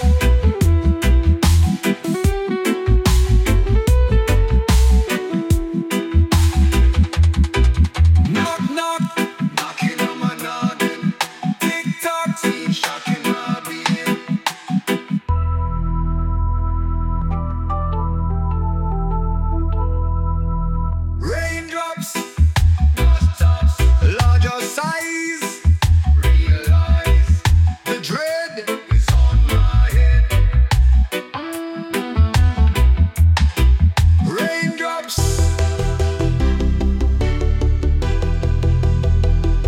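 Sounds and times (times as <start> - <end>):
reggae music: 0.0 - 39.6.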